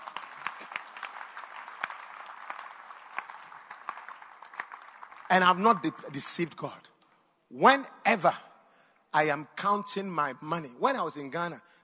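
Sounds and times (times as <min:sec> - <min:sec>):
audience clapping: 0:00.0 - 0:06.4
speech: 0:05.3 - 0:06.9, 0:07.5 - 0:08.5, 0:09.2 - 0:11.8.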